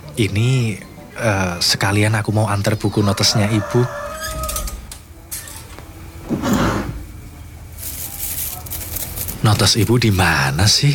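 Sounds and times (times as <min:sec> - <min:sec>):
speech: 0:00.2 - 0:04.4, 0:09.5 - 0:10.9
drawer being opened while searching: 0:06.3 - 0:07.0.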